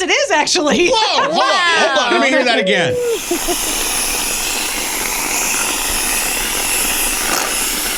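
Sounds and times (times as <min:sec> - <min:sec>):
speech: 0:00.3 - 0:03.9
laughter: 0:00.8 - 0:03.9
whipped cream can spraying: 0:02.9 - 0:07.9.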